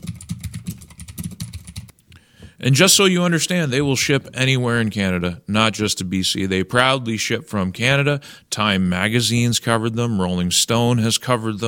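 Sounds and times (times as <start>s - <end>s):
typing a chat message on a computer keyboard: 0.0s - 2.0s
speech: 2.6s - 11.6s.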